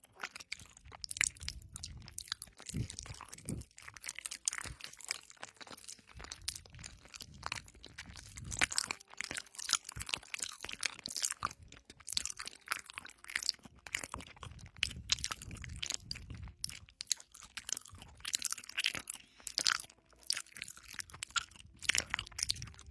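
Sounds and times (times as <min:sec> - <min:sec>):
chewing crunches and wet bites: 0:00.0 - 0:22.8.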